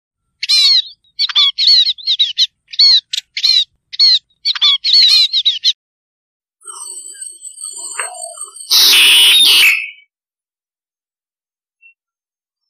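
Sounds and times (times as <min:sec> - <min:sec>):
starling calls: 0:00.4 - 0:05.8, 0:06.6 - 0:10.0.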